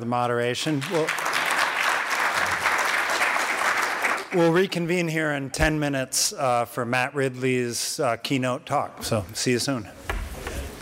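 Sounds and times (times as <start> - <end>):
speech: 0.0 - 1.3, 4.3 - 10.1
audience applause: 0.7 - 4.5.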